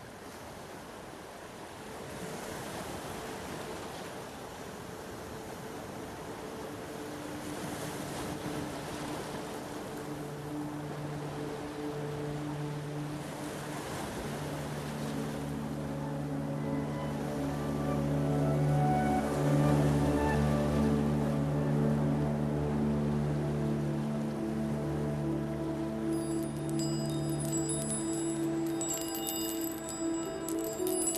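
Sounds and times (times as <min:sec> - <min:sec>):
manifesting meditation soundscape: 0:06.2 - 0:31.1.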